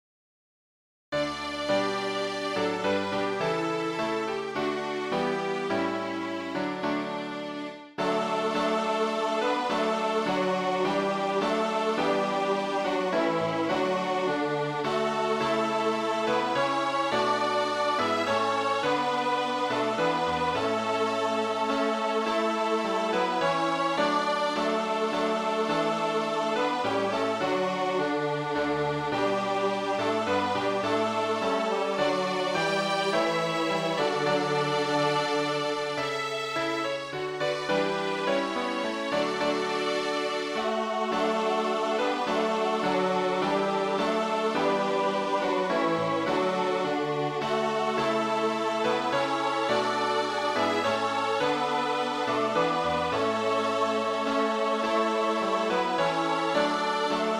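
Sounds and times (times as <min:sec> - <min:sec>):
musical accompaniment: 0:01.2 - 0:57.3.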